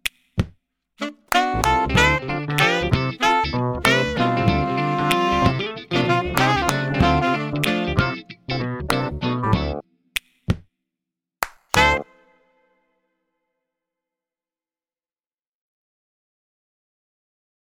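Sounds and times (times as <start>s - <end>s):
music: 1.0s - 9.8s, 11.7s - 13.0s.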